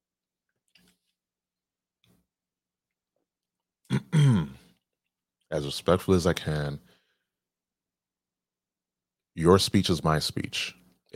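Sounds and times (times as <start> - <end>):
person gulping water: 3.8 - 4.8
speech: 5.5 - 6.9, 9.4 - 11.1.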